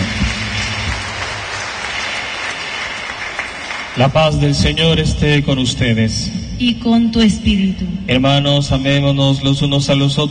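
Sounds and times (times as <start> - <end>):
audience clapping loudly: 0.0 - 4.8
speech: 4.0 - 10.2.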